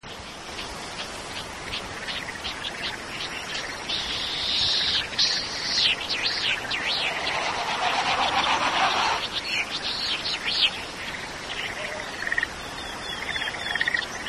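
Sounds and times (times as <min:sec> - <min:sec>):
insects buzzing: 0:00.2 - 0:14.2
Latham's snipe calling: 0:04.3 - 0:10.8
road traffic: 0:06.3 - 0:09.6.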